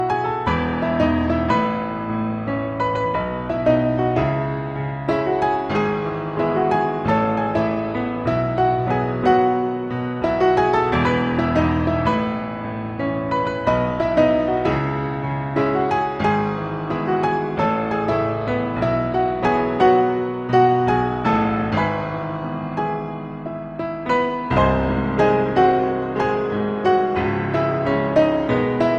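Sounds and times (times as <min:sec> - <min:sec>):
piano: 0:00.0 - 0:28.9.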